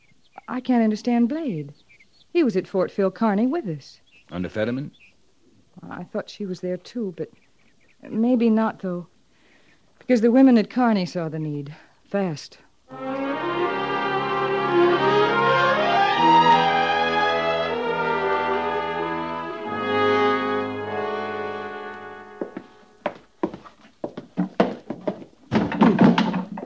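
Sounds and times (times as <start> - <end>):
speech: 0.5 - 5.0, 5.8 - 7.4, 8.0 - 9.1, 10.1 - 13.2
music: 12.9 - 23.1
boxes being moved into living quarters: 24.3 - 26.6.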